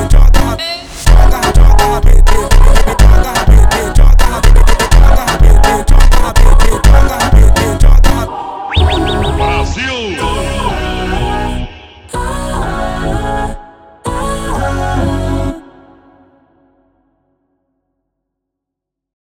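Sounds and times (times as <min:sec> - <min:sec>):
slowed funk music: 0:00.0 - 0:11.6.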